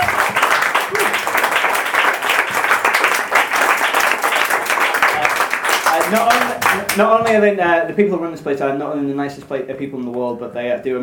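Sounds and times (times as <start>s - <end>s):
audience applause: 0.0s - 7.1s
speech: 7.0s - 11.0s.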